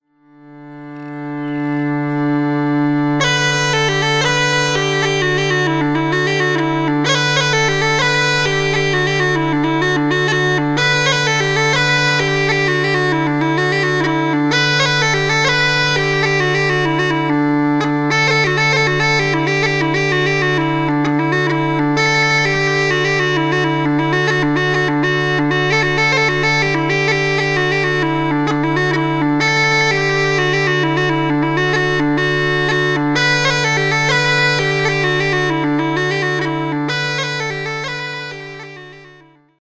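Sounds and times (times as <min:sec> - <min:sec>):
jig tune: 0:00.4 - 0:39.4.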